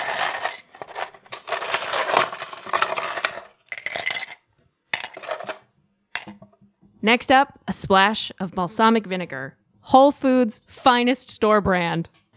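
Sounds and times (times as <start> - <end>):
ice cubes clinking into a cup: 0.0 - 4.4, 5.0 - 5.6
speech: 7.0 - 12.2.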